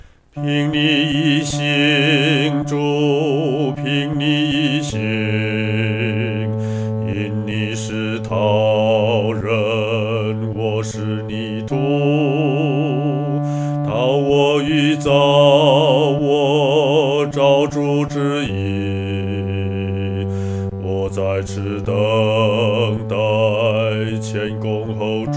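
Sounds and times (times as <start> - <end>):
solo singing fourth voice: 0.3 - 25.3.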